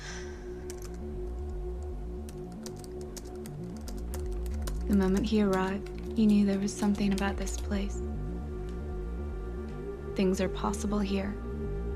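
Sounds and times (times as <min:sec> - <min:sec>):
steady low hum: 0:00.0 - 0:11.9
typing on a laptop keyboard: 0:00.7 - 0:01.6, 0:02.2 - 0:07.9
speech: 0:04.9 - 0:08.1, 0:10.2 - 0:11.4.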